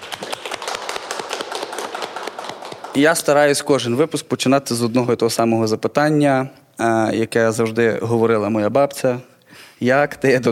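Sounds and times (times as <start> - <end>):
crowd clapping: 0.0 - 3.7
speech: 3.0 - 10.5.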